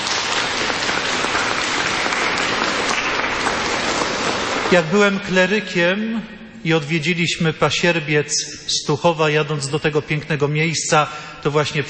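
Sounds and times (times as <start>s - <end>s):
audience applause: 0.0s - 5.0s
speech: 4.7s - 11.8s.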